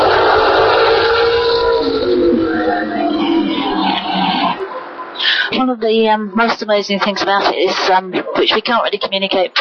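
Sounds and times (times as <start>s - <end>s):
very old Formula One car driving past: 0.0s - 5.2s
speech: 5.7s - 9.5s.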